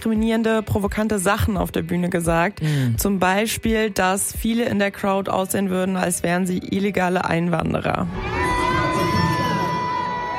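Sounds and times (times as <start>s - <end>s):
speech: 0.0s - 8.5s
concert crowd booing a singer: 8.1s - 10.3s.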